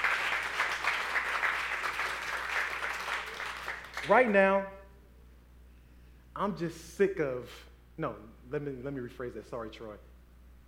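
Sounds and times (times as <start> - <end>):
audience applause: 0.0 - 4.2
speech: 4.0 - 4.8, 6.4 - 10.1.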